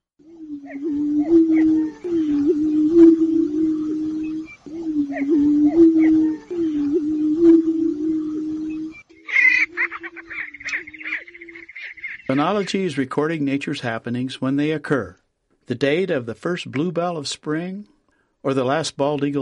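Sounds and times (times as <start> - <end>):
speech: 0.2 - 1.4, 12.3 - 19.4
prairie chickens booming on a lek: 0.2 - 13.6.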